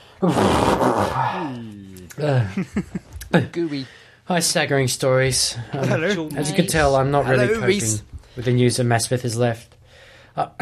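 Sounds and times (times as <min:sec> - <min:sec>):
person blowing nose: 0:00.2 - 0:01.4
speech: 0:00.2 - 0:09.8, 0:10.4 - 0:10.6.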